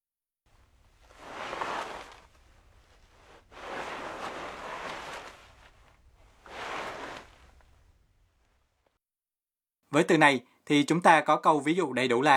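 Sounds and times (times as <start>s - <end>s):
something dragged along the ground with a zuru zuru sound: 0.6s - 8.1s
speech: 10.0s - 12.3s.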